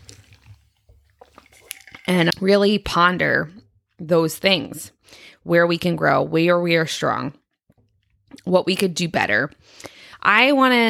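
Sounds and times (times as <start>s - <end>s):
person sipping coffee: 0.0s - 2.1s
speech: 2.1s - 7.4s, 8.4s - 10.8s.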